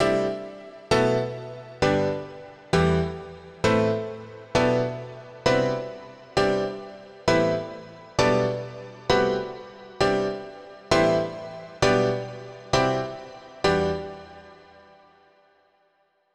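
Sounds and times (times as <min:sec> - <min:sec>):
dance piano music: 0:00.0 - 0:14.5.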